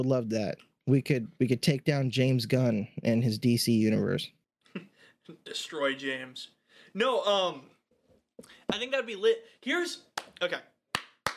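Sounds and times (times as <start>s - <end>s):
speech: 0.0s - 7.7s, 8.4s - 10.7s
hands clapping: 10.1s - 11.3s.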